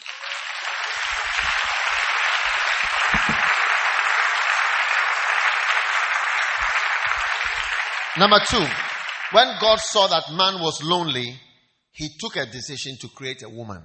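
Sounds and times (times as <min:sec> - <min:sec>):
audience clapping: 0:00.0 - 0:10.9
speech: 0:08.2 - 0:11.4, 0:12.0 - 0:13.8.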